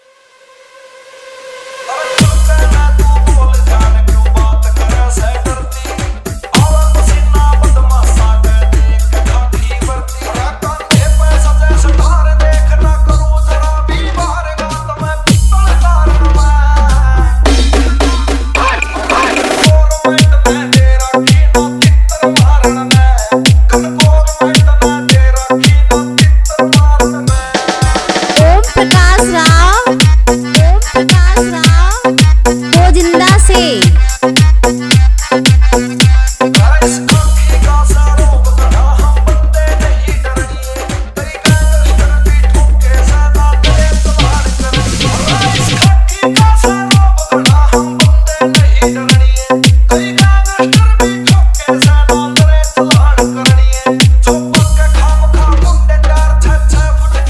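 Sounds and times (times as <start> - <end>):
hard bass DJ remix of a Haryanvi song: 1.2 - 57.2.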